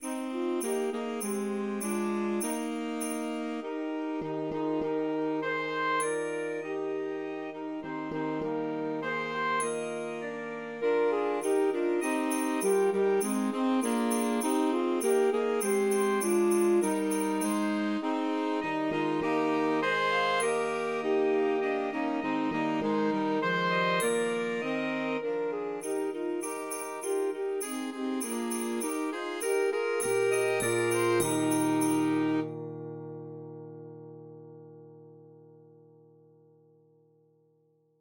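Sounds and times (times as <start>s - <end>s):
saxophone melody: 0.0s - 32.9s.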